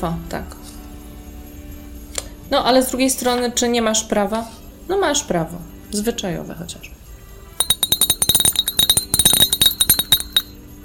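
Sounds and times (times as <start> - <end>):
speech: 0.0 - 0.6, 2.5 - 7.0
sleigh bells jingling: 7.6 - 10.5.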